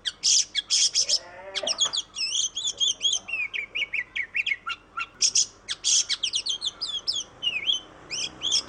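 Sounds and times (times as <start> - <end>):
Oriental magpie-robin singing tutor song in tembakan style: 0.0 - 8.6.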